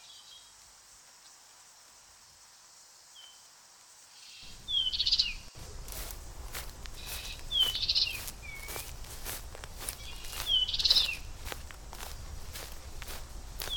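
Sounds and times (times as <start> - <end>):
European goldfinch song of rapid tinkling twittering notes: 4.5 - 13.1, 13.6 - 13.7.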